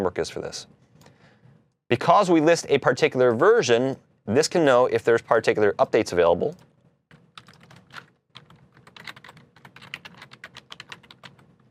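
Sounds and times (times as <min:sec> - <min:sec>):
speech: 0:00.0 - 0:00.8, 0:01.9 - 0:06.7
fingers typing on a computer keyboard: 0:07.1 - 0:11.6.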